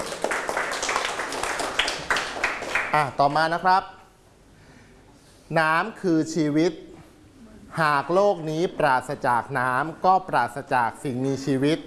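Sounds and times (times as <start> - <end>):
group of students clapping hands: 0.0 - 3.3
speech: 2.9 - 4.0, 5.5 - 6.9, 7.7 - 11.8.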